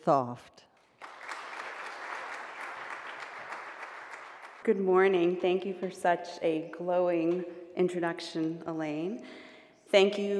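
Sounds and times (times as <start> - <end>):
speech: 0.0 - 0.6, 4.7 - 10.3
audience applause welcoming a speaker at a Monadnock Summer Lyceum talk: 0.8 - 5.4.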